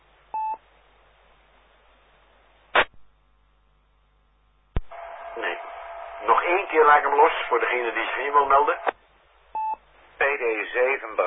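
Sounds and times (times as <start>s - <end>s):
crackling noise burst: 2.7s - 3.1s, 4.7s - 9.2s
two-pitched radio tone: 4.8s - 8.9s
band-limited radio hiss: 4.8s - 9.0s, 10.0s - 11.2s
speech: 6.5s - 8.9s, 10.4s - 11.2s.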